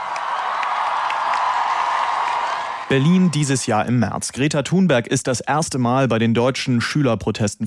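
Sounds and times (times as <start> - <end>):
crowd applauding and cheering at a school climate protest in Berlin: 0.0 - 4.0
speech: 2.9 - 7.6.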